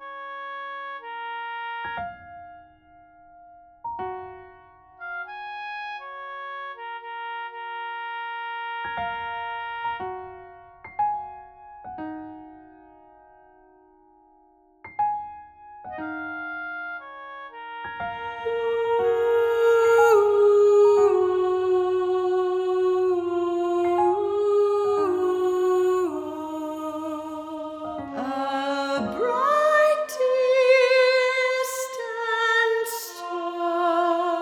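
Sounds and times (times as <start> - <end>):
soprano singing: 17.9 - 34.4.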